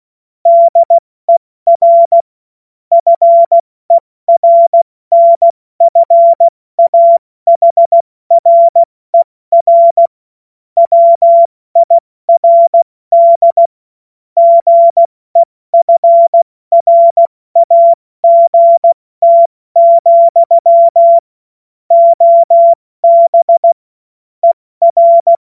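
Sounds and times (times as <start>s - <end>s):
CW Morse code beeps: 0.5s - 2.2s, 2.9s - 10.1s, 10.8s - 13.7s, 14.4s - 21.3s, 21.9s - 23.8s, 24.4s - 25.4s.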